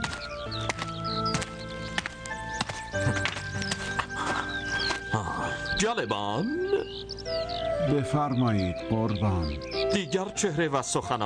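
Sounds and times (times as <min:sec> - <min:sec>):
horse hooves clip-clopping while a horse is saddled: 0:00.0 - 0:05.0
speech: 0:05.8 - 0:11.2.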